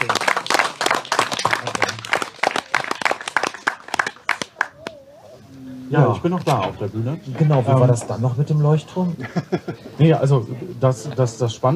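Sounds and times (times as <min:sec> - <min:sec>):
audience applause: 0:00.0 - 0:04.9
speech: 0:05.9 - 0:11.7
laughter: 0:09.1 - 0:10.2.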